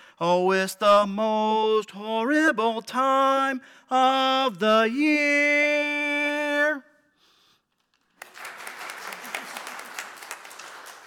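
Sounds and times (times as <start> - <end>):
speech: 0.2 - 6.9
audience applause: 8.2 - 11.0.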